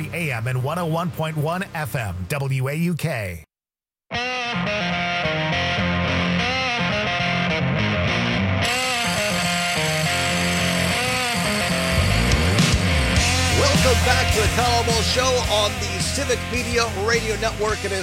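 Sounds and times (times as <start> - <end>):
speech: 0.0 - 3.5, 13.7 - 18.0
electric guitar intro: 4.1 - 18.0.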